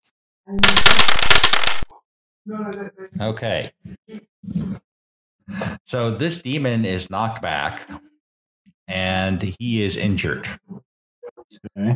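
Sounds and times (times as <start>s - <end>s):
speech: 0.5s - 1.4s, 2.4s - 4.8s, 5.5s - 8.1s, 8.9s - 10.8s, 11.5s - 11.9s
dice rolling on a table: 0.6s - 1.8s.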